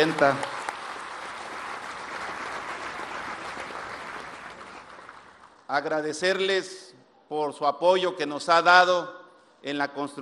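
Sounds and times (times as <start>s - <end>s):
speech: 0.0s - 0.5s, 5.7s - 10.2s
audience applause: 0.0s - 5.6s.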